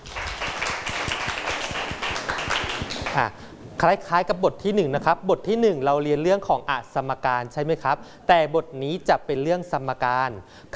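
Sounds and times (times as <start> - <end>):
classroom applause: 0.0 - 3.4
speech: 3.2 - 10.7.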